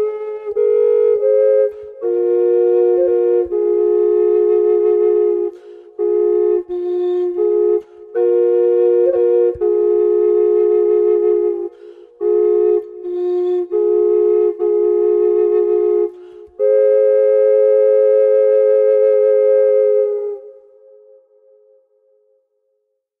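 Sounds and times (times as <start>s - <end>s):
double flute playing: 0.0s - 21.8s.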